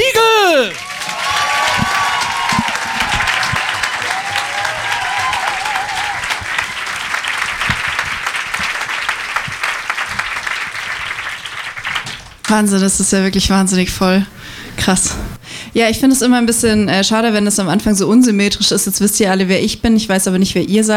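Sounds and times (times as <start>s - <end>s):
audience applause: 0.0s - 12.5s
speech: 12.5s - 20.9s.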